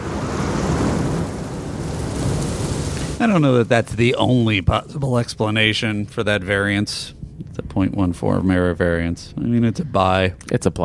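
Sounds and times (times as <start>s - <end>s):
loud explosion: 0.0s - 4.7s
speech: 3.2s - 10.8s.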